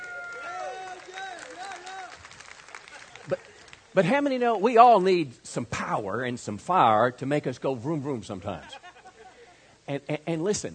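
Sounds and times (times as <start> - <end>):
voices calling and cheering: 0.0 - 2.3
audience clapping: 0.0 - 3.9
speech: 3.3 - 8.8, 9.9 - 10.7.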